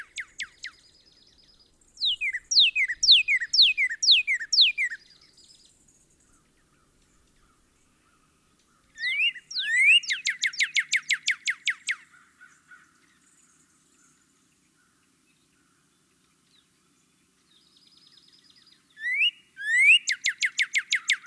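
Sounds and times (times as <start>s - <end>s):
Northern cardinal singing rapid sharp whistled notes: 2.0s - 5.0s, 9.0s - 11.9s, 19.0s - 21.2s.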